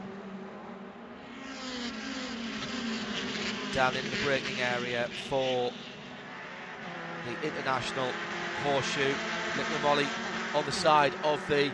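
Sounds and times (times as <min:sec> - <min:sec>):
Mazda MX-5 race car engines battling in a race: 0:00.0 - 0:11.7
speech: 0:03.8 - 0:05.9, 0:07.2 - 0:11.7.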